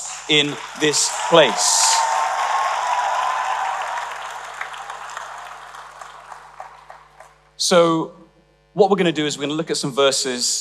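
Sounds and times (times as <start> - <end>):
audience applause: 0.0 - 7.4
speech: 0.3 - 2.0, 7.7 - 8.2, 8.8 - 10.5.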